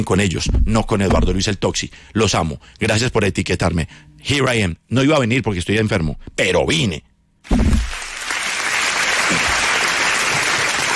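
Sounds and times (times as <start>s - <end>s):
speech: 0.0s - 7.8s
audience applause: 7.9s - 10.9s.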